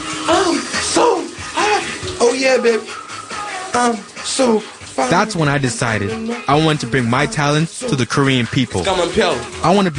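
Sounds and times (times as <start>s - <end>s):
shower water running: 0.0s - 9.9s
person singing: 0.2s - 9.6s
speech: 2.2s - 3.0s, 3.7s - 9.9s.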